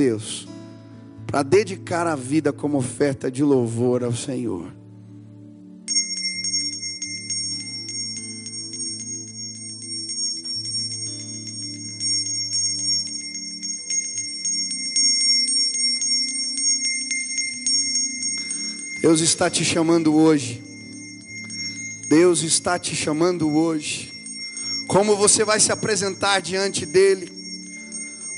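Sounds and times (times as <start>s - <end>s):
speech: 0.0s - 0.5s, 1.3s - 4.8s, 19.1s - 20.7s, 22.1s - 24.1s, 24.9s - 27.4s
bell ringing: 5.9s - 28.3s.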